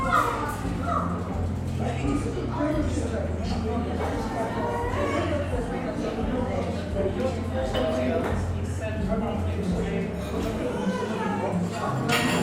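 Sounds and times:
murmur of voices in an English seaside town coffee shop: 0.0 - 12.4
cups clinking: 12.0 - 12.4.

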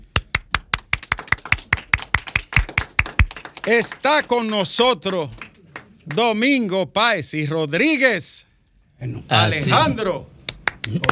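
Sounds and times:
applause: 0.3 - 6.4, 10.5 - 11.0
speech: 3.6 - 5.4, 6.1 - 11.0.

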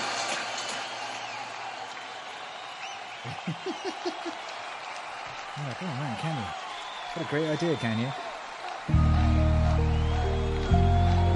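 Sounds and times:
high whistles: 0.0 - 4.3, 6.3 - 8.2, 9.0 - 11.3
crowd cheering sound effect: 0.0 - 11.3
speech: 3.2 - 4.6, 5.6 - 8.3
short rhythmic laugh-like bursts: 3.3 - 4.4.

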